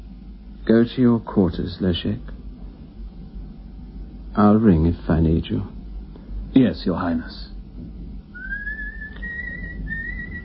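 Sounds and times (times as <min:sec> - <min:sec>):
low rumbling background: 0:00.0 - 0:10.4
speech: 0:00.7 - 0:02.4, 0:04.4 - 0:05.7, 0:06.5 - 0:07.5
coachman whistling: 0:08.3 - 0:10.4.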